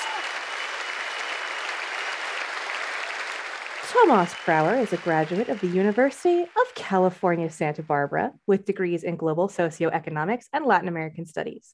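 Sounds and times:
crowd applause sound effect: 0:00.0 - 0:06.7
speech: 0:03.9 - 0:11.7.

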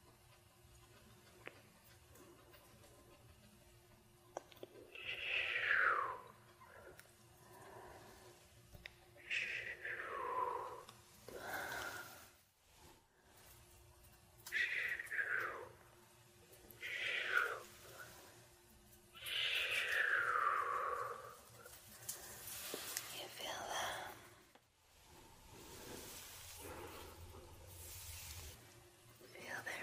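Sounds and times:
low steady hum: 0:00.0 - 0:29.8
hands swishing over hair and skin in a scalp and face massage: 0:27.6 - 0:28.6.

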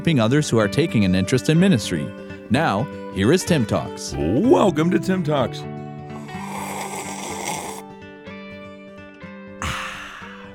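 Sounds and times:
speech: 0:00.0 - 0:05.8
person sipping a drink: 0:06.1 - 0:07.9, 0:09.6 - 0:10.5.

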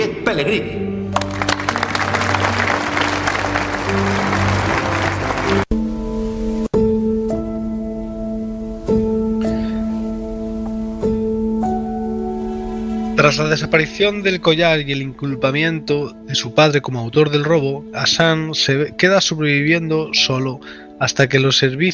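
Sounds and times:
gentle sustained piano-like notes: 0:00.0 - 0:21.7
speech: 0:00.3 - 0:00.9, 0:13.2 - 0:21.9
audience applause: 0:01.1 - 0:05.7.

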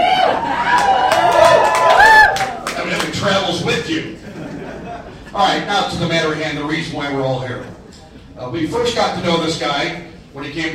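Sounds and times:
crowd cheering: 0:00.0 - 0:03.2
laughter: 0:04.0 - 0:05.4
speech: 0:05.4 - 0:07.8, 0:08.4 - 0:10.7.

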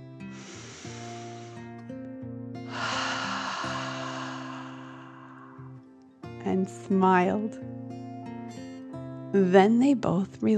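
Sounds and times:
music with sustained stepped tones: 0:00.2 - 0:09.3
deep dragon breath exhales from a breathing exercise: 0:00.3 - 0:01.7, 0:02.7 - 0:05.8
speech: 0:06.5 - 0:07.8, 0:09.3 - 0:10.5.

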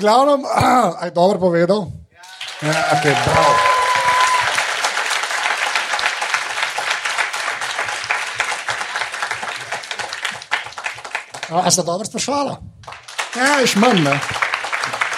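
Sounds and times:
speech: 0:00.0 - 0:02.0, 0:02.6 - 0:03.7, 0:11.5 - 0:14.4
audience applause: 0:02.2 - 0:12.0, 0:12.8 - 0:15.1.

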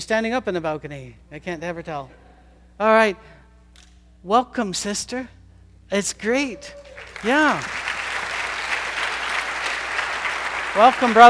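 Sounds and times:
speech: 0:00.0 - 0:02.2, 0:02.8 - 0:03.4, 0:04.2 - 0:07.9, 0:10.8 - 0:11.2
audience applause: 0:06.7 - 0:11.2.

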